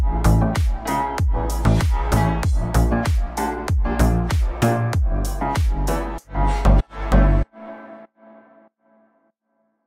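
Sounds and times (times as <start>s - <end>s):
car music remix: 0.0s - 7.5s.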